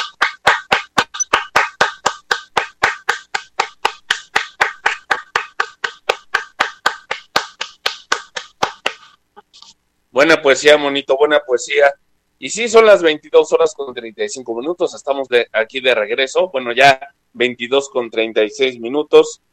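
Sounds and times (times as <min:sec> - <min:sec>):
applause: 0:00.0 - 0:09.0
speech: 0:10.2 - 0:19.5.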